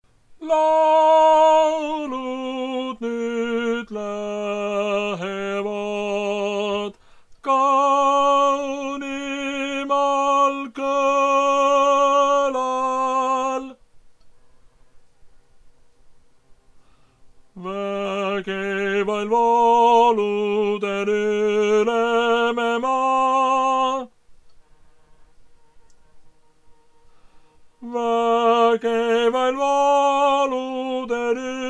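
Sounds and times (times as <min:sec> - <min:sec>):
tenor singing: 0:00.4 - 0:13.8, 0:17.5 - 0:24.2, 0:27.8 - 0:31.6.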